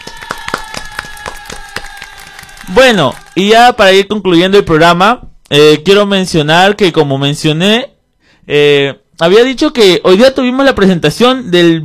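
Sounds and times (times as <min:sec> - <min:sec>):
rhythmic clapping from a small group seeing off a guest: 0:00.0 - 0:03.5
speech: 0:02.7 - 0:07.9, 0:08.5 - 0:11.8.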